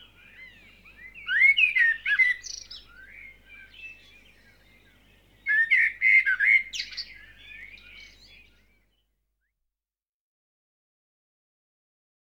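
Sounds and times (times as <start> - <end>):
bird singing in a dawn chorus: 0.0 - 9.2.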